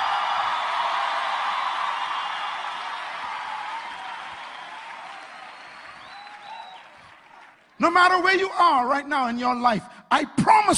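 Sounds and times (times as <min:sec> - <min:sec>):
audience clapping: 0:00.0 - 0:08.4
speech: 0:07.8 - 0:10.7.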